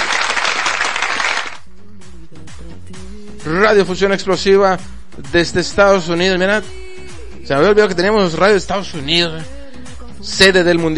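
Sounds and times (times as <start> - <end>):
applause from many hands: 0.0 - 1.6
speech: 3.4 - 6.8, 7.5 - 9.6, 10.2 - 10.9.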